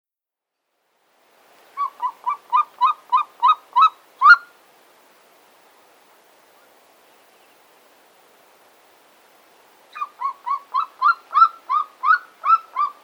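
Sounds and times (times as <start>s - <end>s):
Golden Eagle yelping calls: 1.8s - 4.5s, 9.9s - 13.0s.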